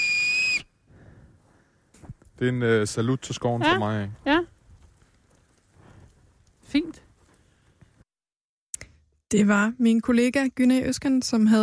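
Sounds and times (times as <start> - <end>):
whistle blown through a maple seed in Boserup Forest: 0.0 - 0.8
speech: 2.4 - 4.5, 9.3 - 11.6.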